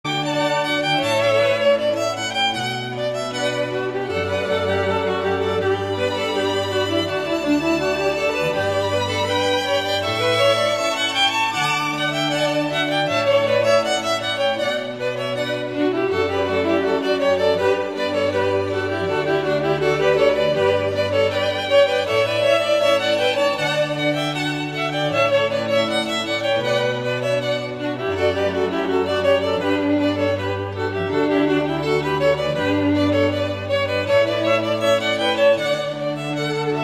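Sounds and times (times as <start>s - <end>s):
instrumental canon without lyrics: 0.1s - 36.8s.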